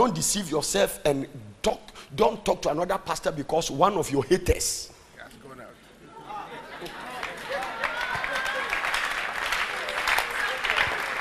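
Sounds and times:
speech: 0.0 - 4.9
audience clapping: 6.8 - 11.1.

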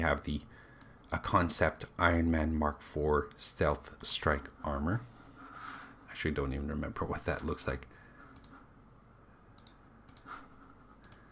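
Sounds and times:
speech: 0.0 - 5.1, 6.2 - 7.9
soft steady hum: 0.0 - 11.3
computer mouse clicking: 8.3 - 8.6, 9.5 - 11.3.

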